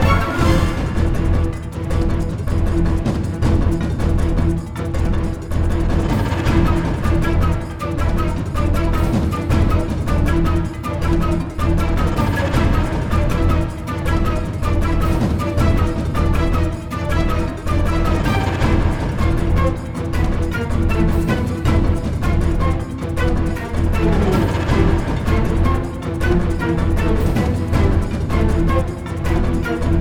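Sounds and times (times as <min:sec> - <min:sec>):
in-game boss music loop: 0:00.0 - 0:29.9.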